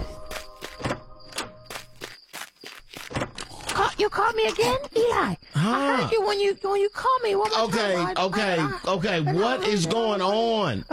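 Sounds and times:
footsteps of someone running: 0.0 - 3.2
speech: 4.0 - 10.9.

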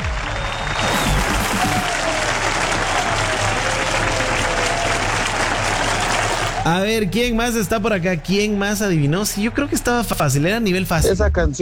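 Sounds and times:
applause sound effect: 0.0 - 6.9
speech: 6.6 - 11.6.

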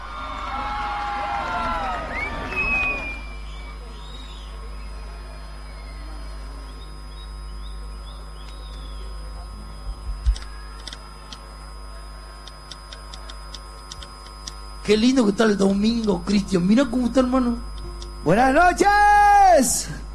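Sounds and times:
crowd cheering and applauding: 0.0 - 3.2
faint scattered voices: 3.5 - 13.7
speech: 14.9 - 20.0.

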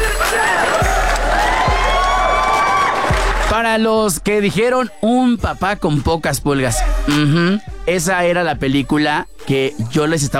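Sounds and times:
applause: 0.2 - 3.7
speech: 3.6 - 10.3.

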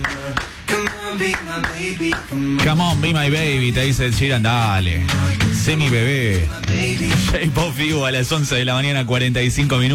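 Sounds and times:
rhythmic hand claps in a pop music track: 0.0 - 2.7
speech: 1.1 - 9.9.

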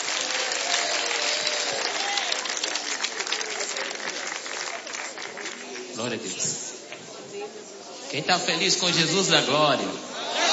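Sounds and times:
audience applauding: 0.0 - 6.3
speech: 6.0 - 6.6, 8.1 - 10.1.

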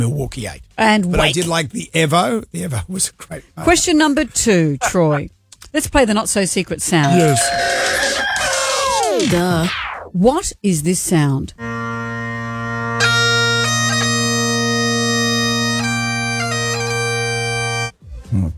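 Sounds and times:
speech: 0.0 - 8.5, 9.2 - 11.7
bagpipes playing: 7.0 - 8.2, 11.6 - 18.0.

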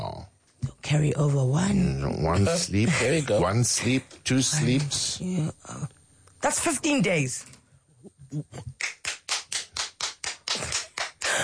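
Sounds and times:
speech: 0.9 - 7.6, 8.3 - 8.8
single hand clap: 8.8 - 11.4.

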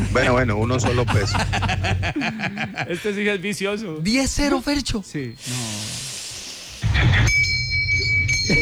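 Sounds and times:
laughter: 0.0 - 3.4
speech: 0.2 - 6.1
bell ringing: 6.8 - 8.5.

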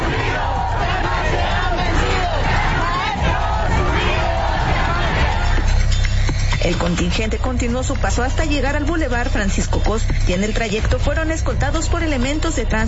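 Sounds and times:
marching crowd shouting protest slogans: 0.0 - 5.8
speech: 6.9 - 12.8.

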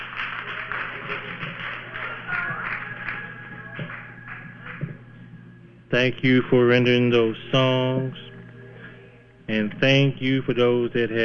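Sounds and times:
audience hand clapping in praise: 0.0 - 5.3
speech: 5.9 - 8.2, 9.5 - 11.2.

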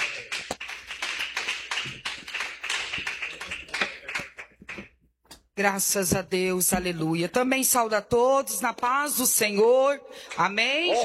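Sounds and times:
audience clapping hands: 0.0 - 5.0
speech: 5.6 - 11.0.

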